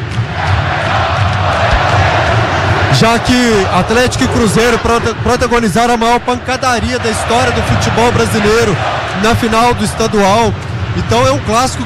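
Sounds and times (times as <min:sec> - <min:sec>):
football fans chanting a player's name during an Atlético–Cruzeiro derby: 0:00.1 - 0:05.2, 0:06.6 - 0:10.0
speech: 0:03.0 - 0:11.8.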